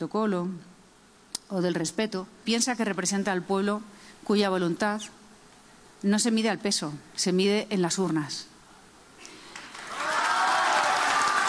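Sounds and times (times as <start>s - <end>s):
speech: 0.0s - 0.7s, 1.5s - 5.2s, 6.0s - 8.5s
audience applause: 9.4s - 11.4s.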